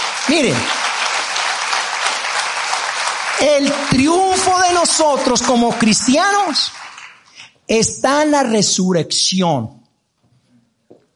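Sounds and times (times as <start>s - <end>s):
audience applause: 0.0s - 7.4s
speech: 0.3s - 0.8s, 3.4s - 6.8s, 7.7s - 9.8s.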